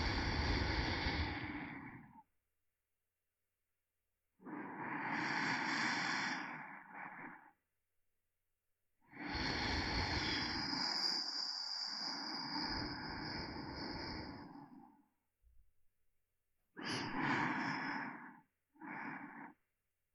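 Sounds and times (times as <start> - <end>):
sleeping breath: 0.0 - 2.2, 4.4 - 7.6, 9.1 - 15.1, 16.8 - 19.6.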